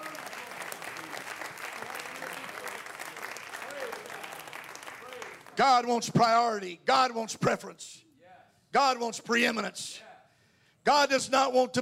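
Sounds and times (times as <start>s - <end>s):
audience clapping hands: 0.0s - 5.9s
speech: 5.6s - 8.0s, 8.7s - 10.1s, 10.8s - 11.7s.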